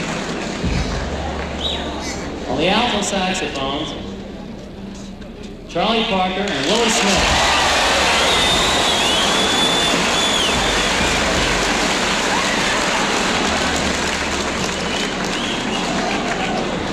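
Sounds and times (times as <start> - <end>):
audience applause: 0.0 - 2.0, 6.4 - 16.9
speech: 2.6 - 4.0, 5.7 - 7.6.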